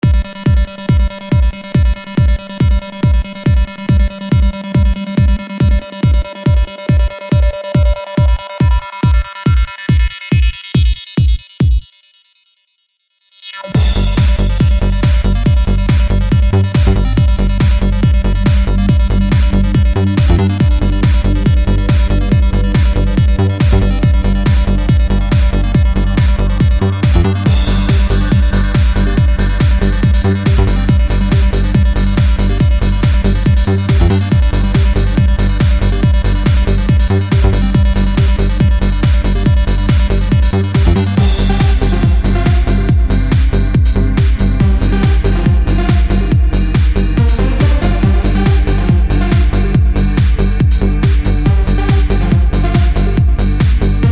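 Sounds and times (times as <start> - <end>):
trance music: 0.0 - 54.0.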